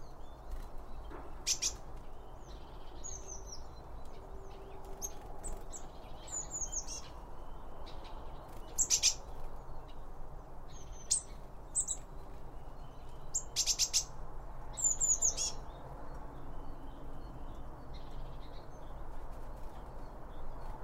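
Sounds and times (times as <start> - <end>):
bird chirps and clicky bursts: 0.0 - 10.1, 10.7 - 20.8.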